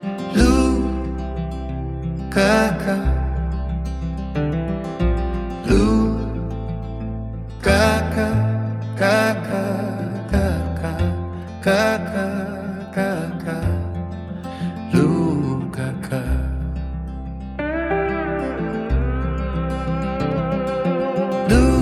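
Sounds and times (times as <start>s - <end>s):
acoustic music: 0.0s - 21.8s.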